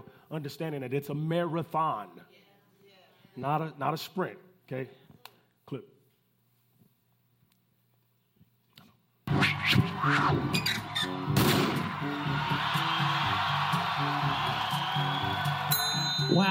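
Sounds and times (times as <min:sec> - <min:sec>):
speech: 0:00.3 - 0:02.4, 0:03.4 - 0:05.0, 0:05.7 - 0:05.9, 0:10.0 - 0:11.4, 0:16.3 - 0:16.4
crowd cheering at a marathon: 0:09.3 - 0:16.4.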